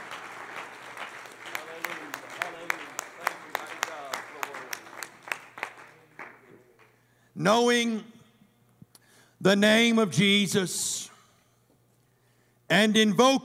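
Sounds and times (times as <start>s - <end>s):
crowd hand clapping: 0.0s - 7.1s
speech: 7.4s - 8.1s, 9.4s - 11.1s, 12.8s - 13.4s.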